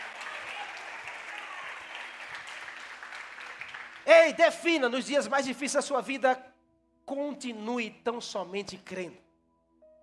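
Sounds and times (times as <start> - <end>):
audience applauding: 0.0 - 4.6
speech: 4.1 - 6.5, 7.1 - 9.2.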